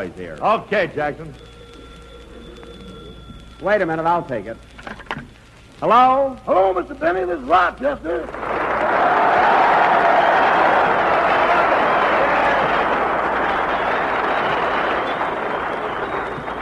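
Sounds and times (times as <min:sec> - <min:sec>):
speech: 0:00.0 - 0:01.6, 0:03.6 - 0:05.1, 0:05.8 - 0:09.1
large audience applause: 0:08.2 - 0:16.5.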